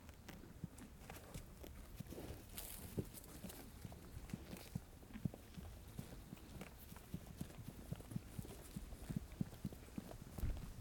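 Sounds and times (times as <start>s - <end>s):
horse trotting in a rural countryside farm ranch pasture: 0.0s - 10.7s.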